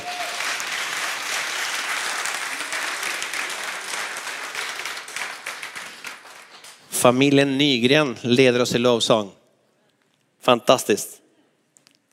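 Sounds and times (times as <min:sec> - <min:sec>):
audience applause: 0:00.0 - 0:06.9
speech: 0:07.0 - 0:09.4, 0:10.4 - 0:11.2.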